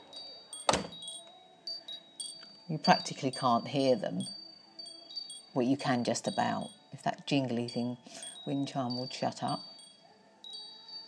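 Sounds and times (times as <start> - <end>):
double glazing patio door closing: 0.6 - 1.2
speech: 2.7 - 4.4, 5.6 - 9.7.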